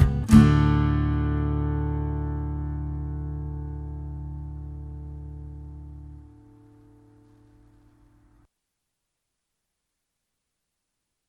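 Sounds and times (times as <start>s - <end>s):
banjo tune: 0.0s - 3.1s.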